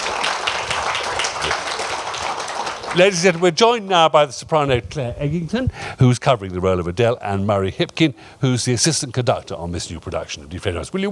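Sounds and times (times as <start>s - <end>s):
audience applause: 0.0s - 3.7s
speech: 2.9s - 11.0s.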